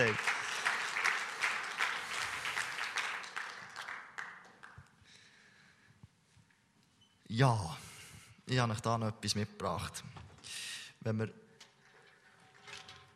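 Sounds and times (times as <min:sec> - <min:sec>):
crowd applause: 0:00.0 - 0:04.8
speech: 0:07.4 - 0:07.8, 0:08.5 - 0:11.4.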